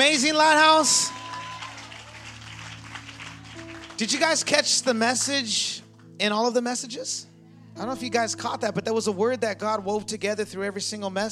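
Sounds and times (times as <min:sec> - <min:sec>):
speech: 0:00.1 - 0:01.2, 0:04.0 - 0:11.3
audience clapping hands: 0:00.5 - 0:06.0.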